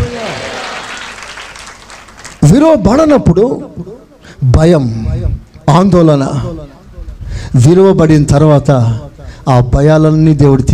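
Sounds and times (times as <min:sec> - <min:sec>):
congregation clapping in praise during a sermon: 0:00.0 - 0:02.6
speech: 0:02.5 - 0:06.7, 0:07.5 - 0:10.7.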